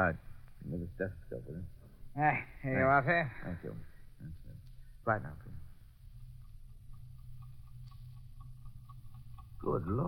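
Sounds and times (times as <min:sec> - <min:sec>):
speech: 0:00.0 - 0:04.4, 0:05.0 - 0:05.6, 0:09.6 - 0:10.0
clockwork ticking inside a bomb's nose: 0:04.6 - 0:10.0.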